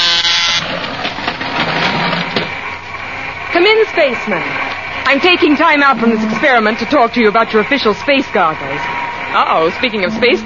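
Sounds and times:
electric door buzzer: 0.0 - 2.6, 5.2 - 10.4
rattling mechanical whir: 0.0 - 10.4
speech: 3.7 - 10.4.

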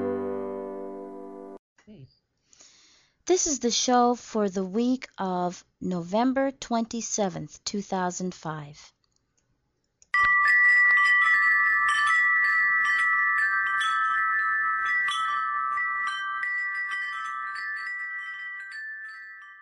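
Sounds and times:
speech: 3.3 - 9.0
wind chimes hanging in a kitchen doorway: 10.2 - 19.6.

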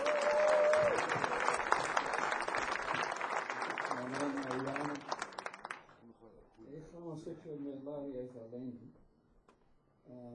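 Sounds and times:
audience applause: 0.0 - 6.0.

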